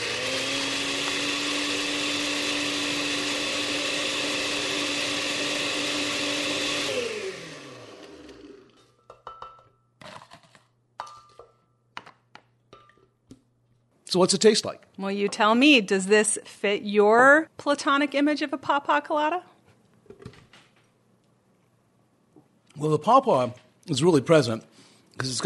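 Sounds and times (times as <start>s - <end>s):
blender crushing ice: 0.0s - 8.8s
speech: 14.2s - 19.5s, 22.8s - 25.4s.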